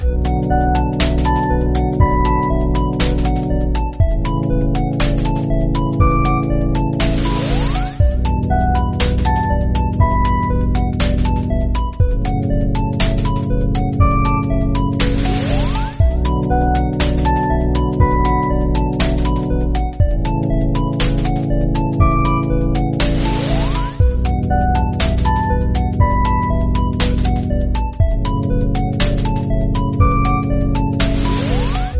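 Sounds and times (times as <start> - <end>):
boss battle music loop: 0.0 - 31.9.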